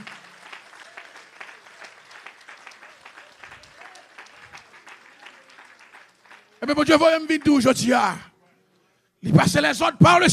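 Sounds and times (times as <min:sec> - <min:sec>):
audience applause: 0:00.0 - 0:07.8
speech: 0:06.6 - 0:08.3, 0:09.2 - 0:10.3.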